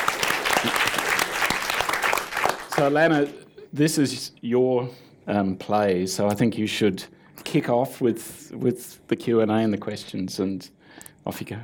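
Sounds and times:
audience applause: 0:00.0 - 0:03.0
speech: 0:00.6 - 0:01.0, 0:02.8 - 0:11.6.

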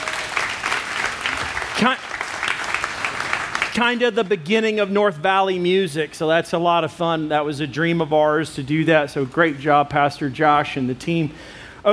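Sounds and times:
audience applauding: 0:00.0 - 0:03.9
speech: 0:01.8 - 0:02.1, 0:03.8 - 0:11.9.

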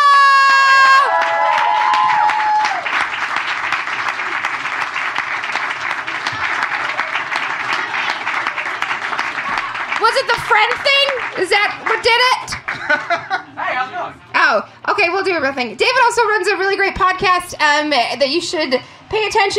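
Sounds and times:
audience applause and cheering: 0:00.0 - 0:13.1
speech: 0:10.2 - 0:13.4, 0:14.5 - 0:19.5
laughter: 0:11.8 - 0:14.0.

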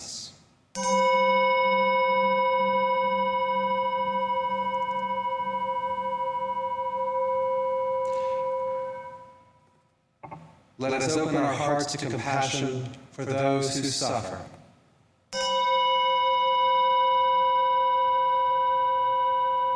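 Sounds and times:
meditation chime ringing: 0:00.8 - 0:09.6, 0:15.4 - 0:19.7
speech: 0:10.8 - 0:14.6.

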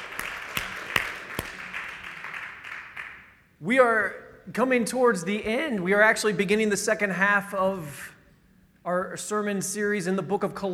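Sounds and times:
audience applause: 0:00.0 - 0:03.2
speech: 0:03.6 - 0:08.1, 0:08.8 - 0:10.7.

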